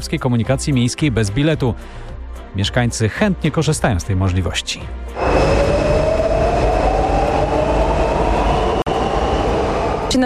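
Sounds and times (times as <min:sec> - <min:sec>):
speech: 0:00.0 - 0:05.5
metro train running: 0:05.2 - 0:10.2.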